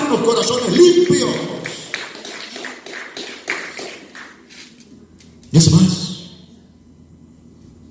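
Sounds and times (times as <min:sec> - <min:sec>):
speech: 0:00.1 - 0:01.6, 0:05.5 - 0:05.8
audience applause: 0:01.2 - 0:04.4.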